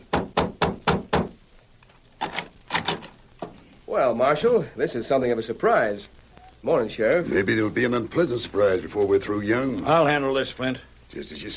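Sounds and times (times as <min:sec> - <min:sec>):
knocking on a wooden door: 0:00.0 - 0:01.4
speech: 0:03.9 - 0:11.5.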